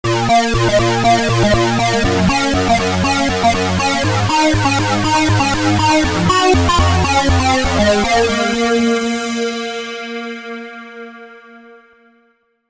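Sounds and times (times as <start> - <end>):
DSS synced delay effect: 0.1 - 9.2.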